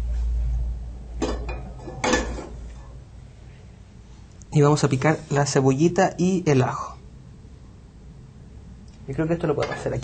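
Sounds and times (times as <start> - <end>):
low hum: 0.0 - 10.0
frying pan clanking and scraping in a home kitchen during cooking: 1.2 - 2.9, 9.6 - 10.0
speech: 4.5 - 7.0, 9.1 - 10.0.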